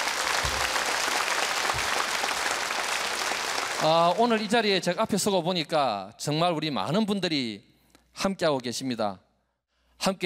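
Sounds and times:
audience applause: 0.0 - 4.4
speech: 3.8 - 9.2, 10.0 - 10.2.

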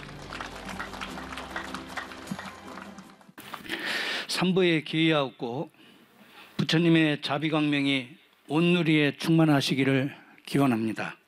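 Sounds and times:
audience applause: 0.0 - 3.4
speech: 4.4 - 5.8, 6.7 - 11.2.

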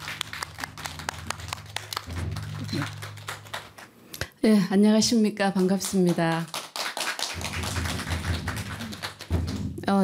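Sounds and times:
audience applause: 0.0 - 4.0, 5.9 - 9.6
speech: 2.7 - 3.0, 4.4 - 6.6.

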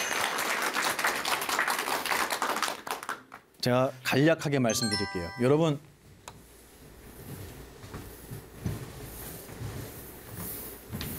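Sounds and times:
audience applause: 0.0 - 3.4
speech: 3.6 - 5.9.

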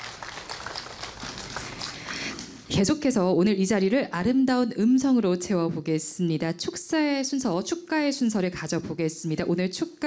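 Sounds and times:
crowd applauding: 0.0 - 2.7
speech: 2.7 - 10.0.

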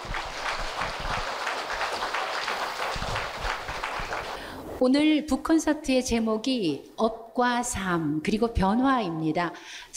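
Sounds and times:
audience applause welcoming a speaker: 0.0 - 4.4
speech: 4.8 - 9.9.

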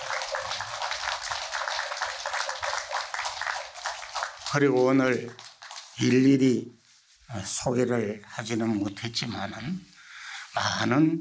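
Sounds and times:
crowd applauding: 0.0 - 6.2
speech: 4.5 - 5.4, 6.0 - 9.9, 10.6 - 11.1.

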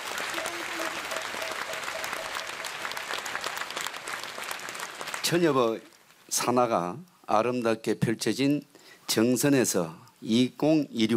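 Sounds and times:
crowd applause: 0.0 - 5.9
speech: 5.3 - 11.1.

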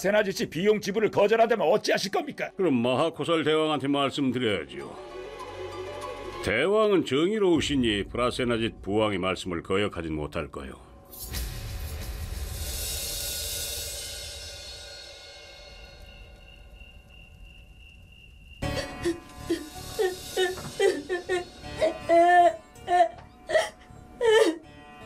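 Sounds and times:
speech: 0.0 - 5.2, 6.4 - 11.4
hiss: 11.1 - 16.9
child crying: 18.7 - 24.6.

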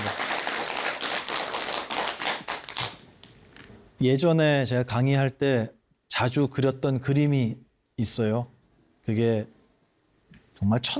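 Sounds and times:
audience applause: 0.0 - 2.9
speech: 4.0 - 9.6, 10.6 - 10.9.

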